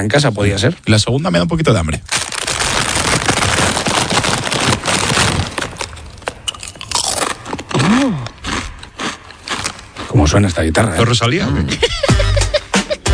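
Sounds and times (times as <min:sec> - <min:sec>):
speech: 0:00.0 - 0:02.4, 0:10.3 - 0:12.4
crinkling: 0:01.6 - 0:10.1
eating crunchy potato chips: 0:01.6 - 0:10.5
brief rising-falling vocal sound: 0:07.7 - 0:08.4
laughter: 0:11.6 - 0:13.1.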